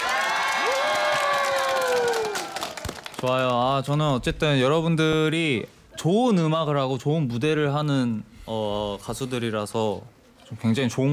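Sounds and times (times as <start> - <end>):
large crowd clapping and cheering: 0.0 - 4.1
speech: 3.2 - 11.1.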